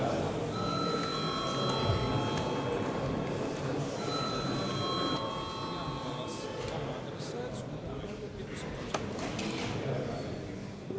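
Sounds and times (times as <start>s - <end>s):
murmur of chatter: 0.0s - 10.9s
parliament voting bell ringing: 0.5s - 3.0s, 4.0s - 6.6s.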